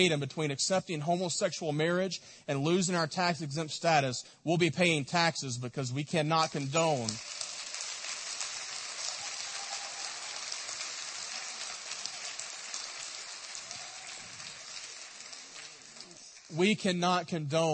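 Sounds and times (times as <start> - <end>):
speech: 0.0 - 7.3, 16.5 - 17.7
audience clapping: 6.5 - 16.7.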